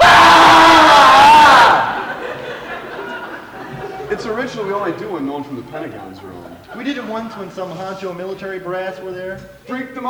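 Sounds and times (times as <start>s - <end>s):
research center staff screaming in unison in a cafeteria: 0.0s - 2.6s
laughter: 1.7s - 7.4s
speech: 4.7s - 10.0s.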